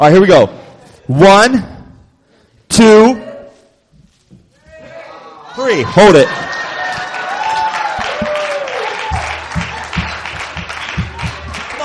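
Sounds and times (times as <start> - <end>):
speech: 0.0 - 1.7, 2.7 - 3.2, 5.6 - 6.5
crowd applause: 6.0 - 11.8.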